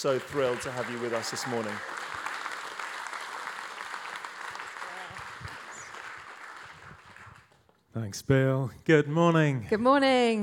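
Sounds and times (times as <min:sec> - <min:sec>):
speech: 0:00.0 - 0:02.0, 0:08.0 - 0:10.4
audience applause welcoming two speakers at a morning gathering: 0:00.0 - 0:07.6.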